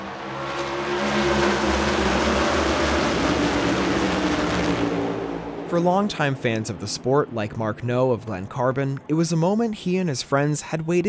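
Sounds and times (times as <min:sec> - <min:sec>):
NASCAR race cars speeding past at more than 130 miles an hour: 0:00.0 - 0:08.4
speech: 0:05.7 - 0:11.0.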